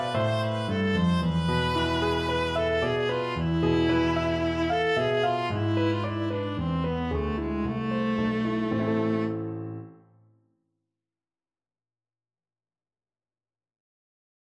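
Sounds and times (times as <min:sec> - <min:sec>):
viola playing a syrtos dance tune: 0:00.0 - 0:09.9.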